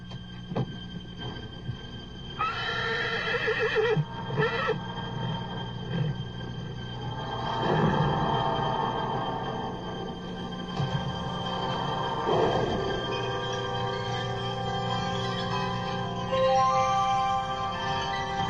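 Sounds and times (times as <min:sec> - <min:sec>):
low rumbling background: 0:00.0 - 0:02.4, 0:04.0 - 0:18.4
blind racehorse whinnying: 0:02.4 - 0:04.8.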